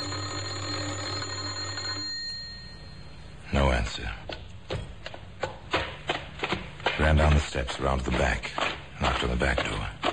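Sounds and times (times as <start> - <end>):
doorbell ringing: 0.0 - 3.3
speech: 3.5 - 4.3, 7.1 - 10.0.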